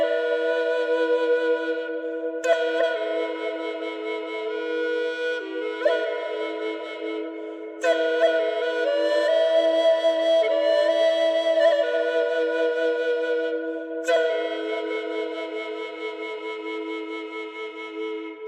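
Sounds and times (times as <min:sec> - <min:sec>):
drone flute in E with reverb: 0:00.0 - 0:18.4.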